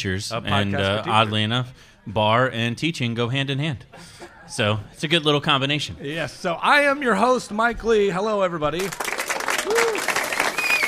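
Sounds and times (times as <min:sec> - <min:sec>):
speech: 0:00.0 - 0:09.8
clap-button applause sound effect: 0:08.8 - 0:10.8
rising-and-falling whistle tone: 0:10.5 - 0:10.8.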